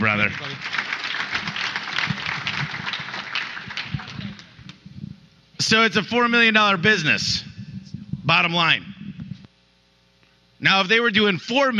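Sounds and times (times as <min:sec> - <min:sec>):
speech: 0:00.0 - 0:01.7, 0:05.6 - 0:07.4, 0:08.3 - 0:08.9, 0:10.6 - 0:11.7
audience clapping: 0:00.0 - 0:04.8.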